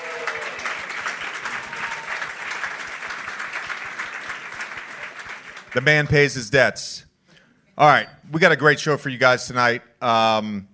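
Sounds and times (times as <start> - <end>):
audience applause at a live show: 0.0 - 6.1
speech: 5.7 - 7.1, 7.8 - 10.7.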